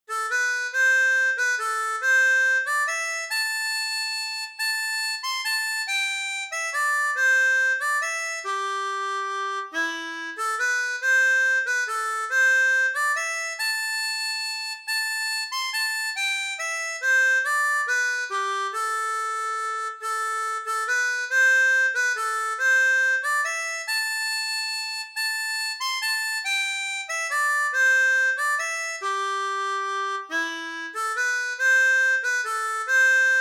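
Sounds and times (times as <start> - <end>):
harmonica playing a waltz: 0.0 - 33.4.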